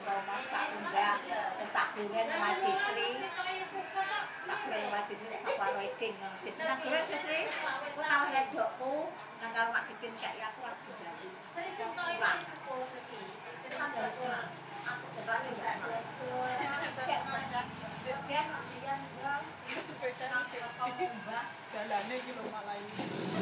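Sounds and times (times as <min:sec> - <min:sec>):
traditional market background noise: 0:00.0 - 0:23.4.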